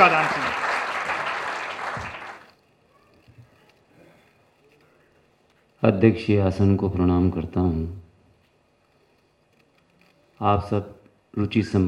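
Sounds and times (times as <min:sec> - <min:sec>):
speech: 0:00.0 - 0:00.7, 0:05.8 - 0:08.0, 0:10.4 - 0:11.8
audience applause: 0:00.0 - 0:02.6.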